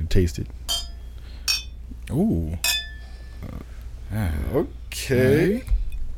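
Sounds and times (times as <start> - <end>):
speech: 0.2 - 0.7, 2.1 - 2.7, 3.4 - 5.8
drinking glasses clinking together in a toast: 0.7 - 1.8, 2.6 - 3.4.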